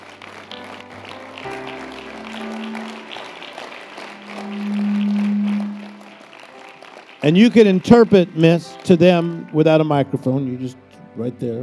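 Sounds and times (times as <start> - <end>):
audience clapping hands: 0.0 - 10.0
sustained musical tones: 2.1 - 9.5
speech: 7.2 - 11.6.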